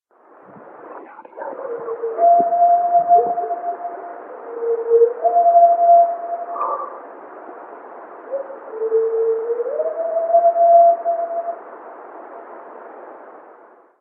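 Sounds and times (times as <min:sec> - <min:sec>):
singing howls: 0:01.0 - 0:07.1, 0:08.3 - 0:11.8.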